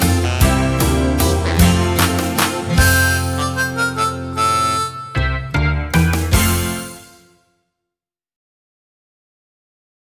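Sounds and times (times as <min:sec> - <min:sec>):
recorder: 0:00.0 - 0:07.0.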